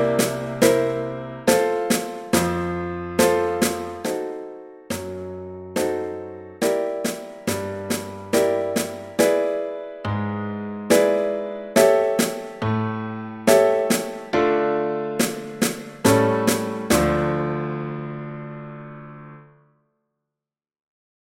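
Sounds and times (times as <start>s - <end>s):
drum: 0.0s - 6.0s, 6.6s - 9.4s, 11.8s - 12.6s, 13.5s - 14.3s, 15.2s - 17.2s
piano: 0.0s - 20.0s.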